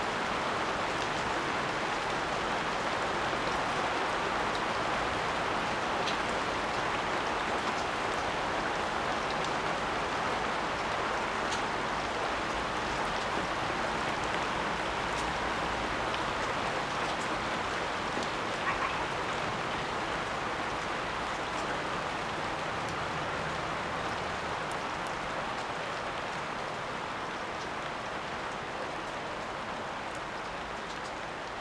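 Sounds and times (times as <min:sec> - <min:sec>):
rain in the jungle: 0:00.0 - 0:31.5.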